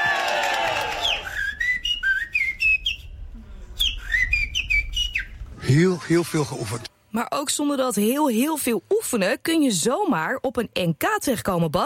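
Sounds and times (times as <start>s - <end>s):
person whistling a blackbird's song: 1.0s - 5.4s
speech: 5.7s - 11.8s.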